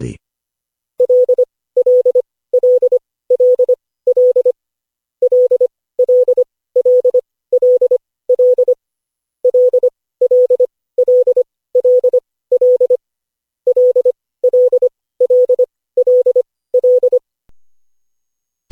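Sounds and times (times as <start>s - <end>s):
CW training morse code beeps: 1.0s - 4.5s, 5.2s - 8.8s, 9.5s - 13.0s, 13.7s - 17.2s.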